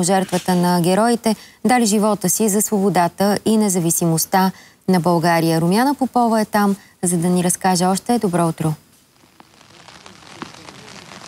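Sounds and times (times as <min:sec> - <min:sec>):
speech: 0:00.0 - 0:08.8
heavy rain on a mountain peak in the Balkans: 0:09.0 - 0:11.2.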